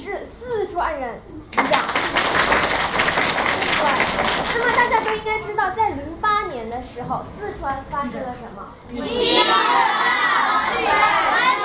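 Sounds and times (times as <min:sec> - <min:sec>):
speech: 0:00.1 - 0:02.2, 0:04.6 - 0:11.6
crowd clapping at a lecture: 0:01.5 - 0:05.4.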